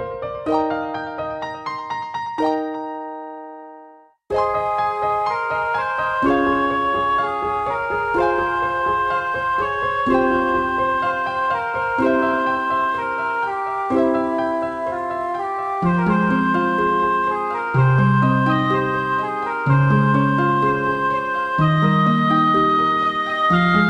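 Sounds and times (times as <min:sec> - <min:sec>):
magical harp: 0:00.0 - 0:23.8.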